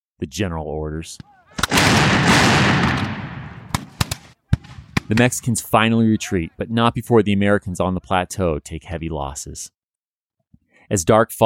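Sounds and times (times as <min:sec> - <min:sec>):
speech: 0:00.2 - 0:02.4, 0:05.1 - 0:09.8, 0:10.9 - 0:11.4
artillery fire from Captain Bragg's flying artillery: 0:01.6 - 0:05.2.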